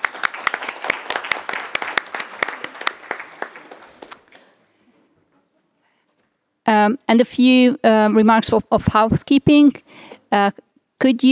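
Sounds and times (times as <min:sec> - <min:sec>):
room of people applauding: 0:00.0 - 0:04.5
speech: 0:06.8 - 0:11.2.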